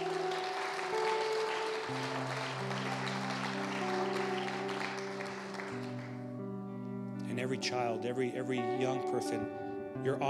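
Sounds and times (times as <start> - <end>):
audience applause: 0.0 - 6.3
sustained keyboard chords: 0.0 - 10.2
speech: 1.9 - 2.3, 7.4 - 10.2.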